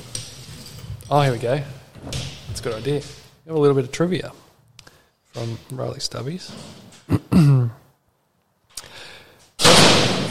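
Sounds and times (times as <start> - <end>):
speech: 1.1 - 4.4, 5.4 - 7.6
door slamming shut: 9.6 - 10.2.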